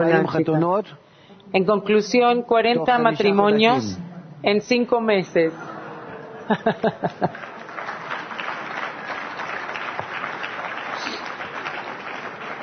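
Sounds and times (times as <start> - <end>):
speech: 0.0 - 5.7, 6.5 - 7.5
laughter: 5.5 - 7.7
audience applause: 6.2 - 12.6.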